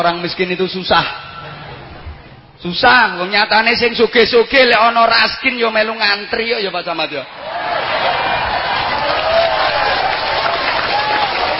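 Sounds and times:
speech: 0.0 - 1.2, 2.6 - 7.8
large crowd audience applause: 7.4 - 11.5.

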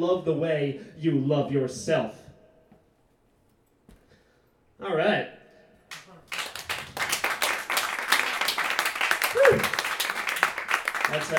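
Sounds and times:
speech: 0.0 - 2.2, 4.8 - 5.4, 11.1 - 11.3
audience applause: 5.9 - 11.3.

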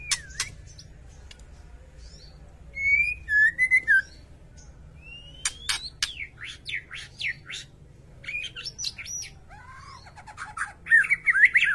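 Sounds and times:
white-rumped shama whistles and clicks: 0.0 - 0.7, 5.1 - 6.2
faint low hum: 0.0 - 11.7.

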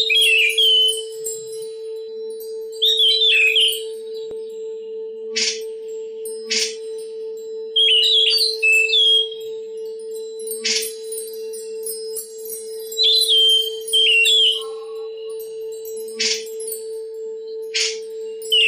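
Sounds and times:
Oriental magpie-robin song: 0.0 - 1.3, 2.2 - 4.3, 5.3 - 5.7, 6.5 - 6.9, 7.7 - 9.6, 10.4 - 16.8, 17.5 - 18.6.

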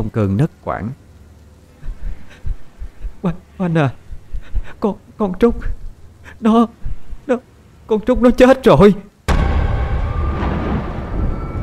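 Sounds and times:
speech: 0.0 - 1.0, 3.2 - 4.0, 4.7 - 5.8, 6.4 - 9.1
rumbling thunderclap: 9.3 - 11.6.

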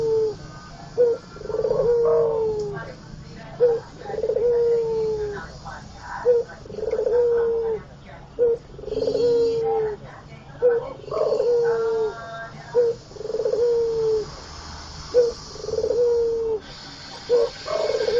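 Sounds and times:
Barbary dove cooing: 0.0 - 10.0, 10.6 - 14.4, 15.0 - 18.1.

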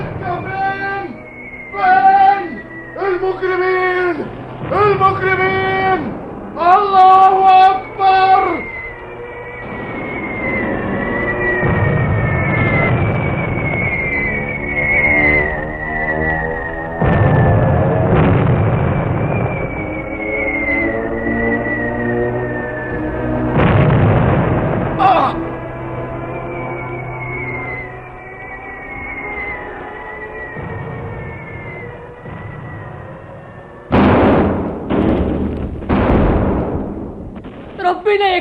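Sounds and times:
shell whistling in a war drama battle scene: 0.0 - 5.6, 6.8 - 18.0, 18.8 - 23.4, 25.0 - 33.9
deep rumbling shelling blasts: 0.0 - 38.3
speech: 3.3 - 7.8.

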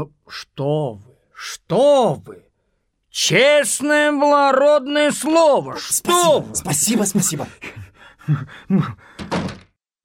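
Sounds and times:
speech: 0.0 - 2.5, 3.1 - 9.6
door being opened with latch and wood clunks: 9.2 - 9.8.

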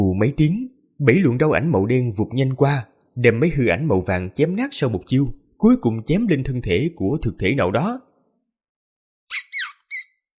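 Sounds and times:
speech: 0.0 - 8.1
small golden-furred beast squealing: 9.3 - 10.2.

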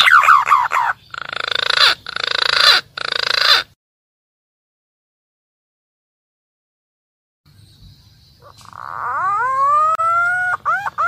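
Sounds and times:
green pigeon calling, used as a lure for wild birds: 0.0 - 3.8, 8.3 - 11.0.

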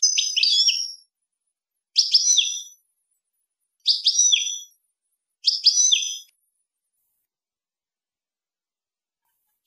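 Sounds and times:
European goldfinch phrase of tinkling slurred high notes: 0.0 - 1.2, 1.9 - 2.8, 3.8 - 4.8, 5.4 - 6.3.

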